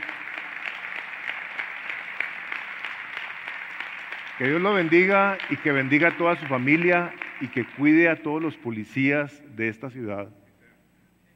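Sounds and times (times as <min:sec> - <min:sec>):
audience applause: 0:00.0 - 0:08.6
speech: 0:04.4 - 0:10.4.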